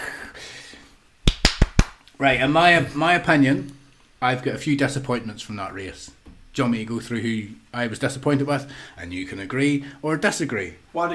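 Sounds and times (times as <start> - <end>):
inserted applause sound effect: 1.3 - 2.0
speech: 2.2 - 11.1.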